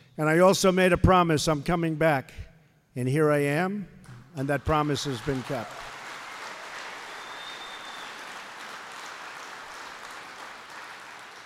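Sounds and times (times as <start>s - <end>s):
speech: 0.2s - 5.8s
person clapping: 5.0s - 11.4s.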